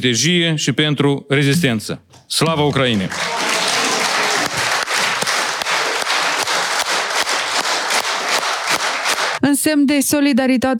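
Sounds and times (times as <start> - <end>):
speech: 0.0 - 3.4, 9.6 - 10.7
parliament members applauding: 2.4 - 9.4.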